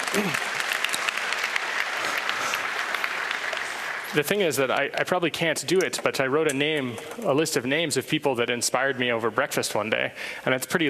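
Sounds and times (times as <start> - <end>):
audience applause: 0.0 - 4.8
speech: 4.1 - 10.8.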